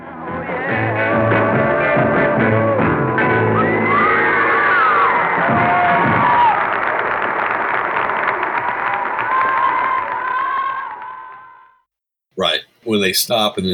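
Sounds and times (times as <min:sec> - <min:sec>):
large live crowd cheering and applauding: 0:00.0 - 0:11.8
whoops: 0:00.3 - 0:11.8
speech: 0:13.0 - 0:13.7.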